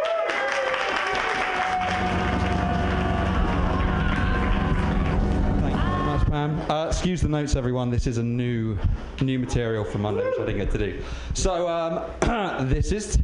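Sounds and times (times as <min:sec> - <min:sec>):
audience applause: 0:00.0 - 0:06.6
speech: 0:06.7 - 0:13.2.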